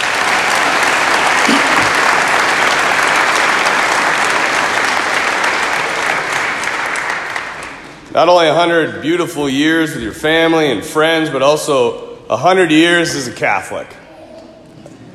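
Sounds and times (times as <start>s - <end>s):
audience applause: 0.0s - 8.0s
speech: 8.2s - 14.0s.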